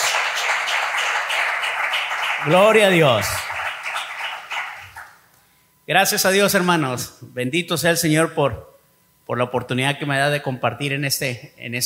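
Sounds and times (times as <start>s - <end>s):
audience applauding: 0.0s - 5.2s
speech: 2.4s - 3.4s, 5.9s - 8.7s, 9.3s - 11.8s.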